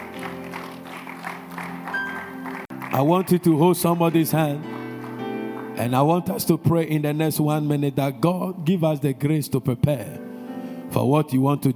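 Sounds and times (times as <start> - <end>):
audience clapping: 0.0 - 6.5
speech: 3.0 - 4.7, 5.8 - 10.2, 10.9 - 11.7.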